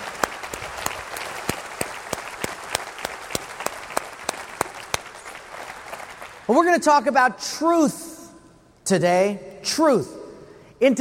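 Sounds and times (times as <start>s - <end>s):
audience clapping: 0.0s - 6.7s
speech: 6.5s - 8.1s, 8.9s - 10.2s, 10.8s - 10.9s.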